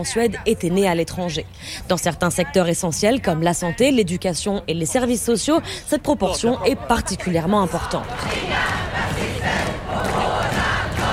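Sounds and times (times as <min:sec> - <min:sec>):
speech: 0:00.0 - 0:08.7
large crowd shouting on a city square: 0:07.6 - 0:11.1.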